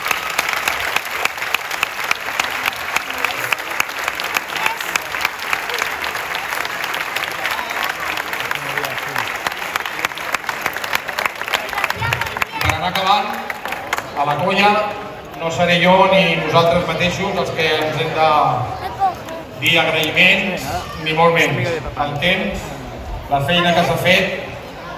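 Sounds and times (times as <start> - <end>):
applause: 0.0 - 15.4, 18.9 - 20.2
speech: 15.7 - 18.8, 19.6 - 22.7, 23.3 - 24.4.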